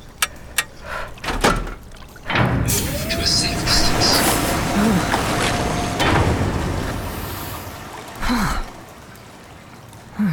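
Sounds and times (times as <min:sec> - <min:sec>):
suit locker release clicks: 0:00.0 - 0:02.7
suit locker door sliding open with a hissing rush: 0:01.3 - 0:08.2.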